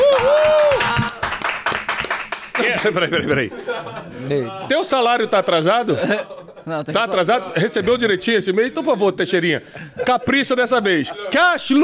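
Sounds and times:
high cheer or whistle: 0.0 - 1.2
audience applause: 0.0 - 3.0
laughter: 2.8 - 7.9
speech: 2.8 - 11.8.

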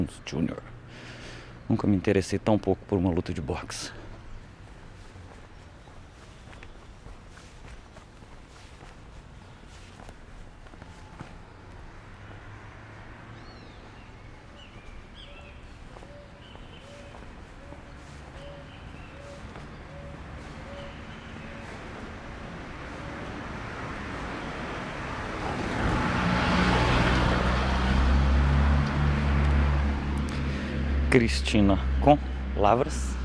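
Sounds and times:
speech: 0.0 - 4.0, 31.2 - 33.2
car passing and stopping: 10.9 - 33.2
ground dove cooing in background: 15.2 - 23.4.

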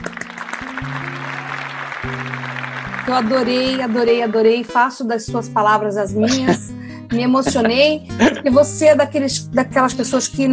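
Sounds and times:
applause sound effect: 0.0 - 4.8
speech: 3.1 - 10.5
laughter: 6.2 - 6.6, 7.3 - 8.4.

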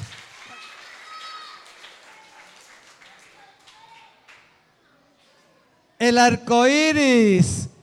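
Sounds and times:
children clapping: 0.0 - 4.6
faint high children's voices: 0.5 - 6.0
speech: 6.0 - 7.6.

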